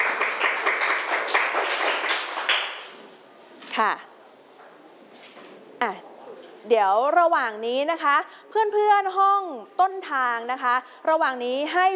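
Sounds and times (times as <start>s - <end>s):
classroom clapping: 0.0s - 3.2s
speech: 3.8s - 4.1s, 6.7s - 11.9s.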